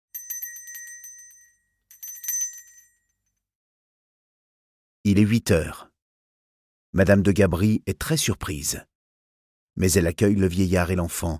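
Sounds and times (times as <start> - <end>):
doorbell ringing: 0.1 - 3.2
speech: 5.0 - 5.9, 6.9 - 8.9, 9.8 - 11.3.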